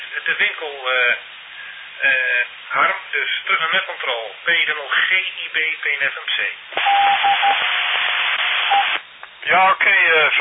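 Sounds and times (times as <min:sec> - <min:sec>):
radio static hiss: 0:00.0 - 0:10.4
speech: 0:00.2 - 0:01.4, 0:02.0 - 0:10.4
Morse code tones over radio: 0:06.8 - 0:07.6, 0:08.6 - 0:09.0.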